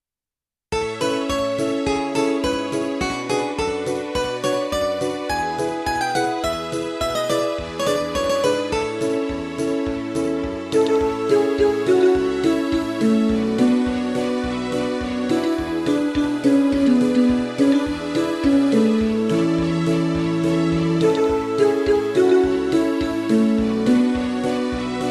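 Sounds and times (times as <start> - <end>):
MIDI music: 0.8 - 25.1.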